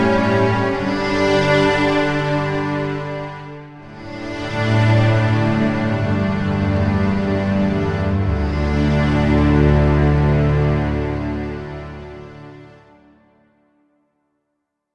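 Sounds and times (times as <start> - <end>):
emotional string music: 0.0 - 14.1.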